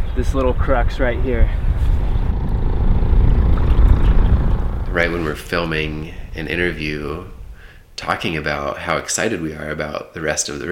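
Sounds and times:
speech: 0.2 - 1.7, 5.0 - 7.4, 8.0 - 10.7
big motorboat passing: 0.6 - 8.2.

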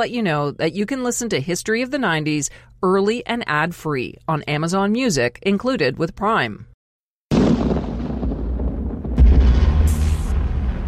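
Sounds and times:
speech: 0.0 - 6.7
thunder: 7.3 - 10.8.

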